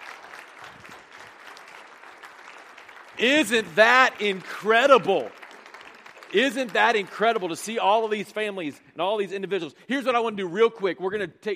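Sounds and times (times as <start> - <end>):
audience round of applause: 0.0 - 8.2
speech: 3.2 - 5.4, 6.3 - 11.5.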